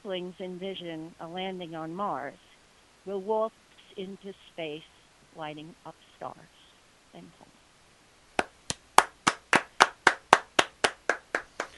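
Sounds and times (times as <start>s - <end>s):
speech: 0.0s - 7.6s
hands clapping: 8.4s - 11.7s.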